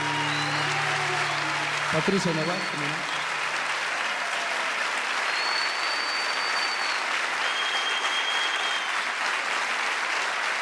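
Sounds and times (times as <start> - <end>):
high whistles: 0.0 - 3.5, 5.2 - 9.0
loud audience applause: 0.0 - 10.5
speech: 1.9 - 3.3.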